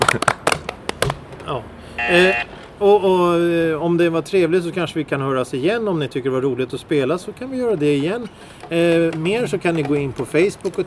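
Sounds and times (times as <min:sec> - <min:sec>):
small round of applause: 0:00.0 - 0:01.0
speech: 0:00.1 - 0:00.4, 0:01.5 - 0:10.8.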